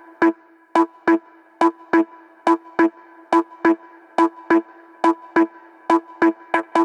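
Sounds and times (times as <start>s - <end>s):
music loop at 140 BPM in A: 0.3s - 6.8s.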